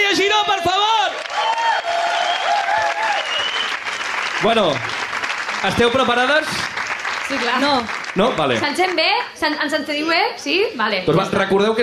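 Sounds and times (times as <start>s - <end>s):
applause: 0.1s - 9.4s
speech: 4.4s - 5.0s, 5.6s - 6.7s, 7.3s - 11.8s.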